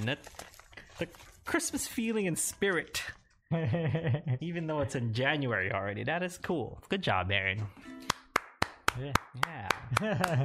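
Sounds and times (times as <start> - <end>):
speech: 0.0 - 8.0, 9.0 - 10.4
laughter: 3.5 - 4.6, 9.5 - 10.4
hands clapping: 8.0 - 10.4.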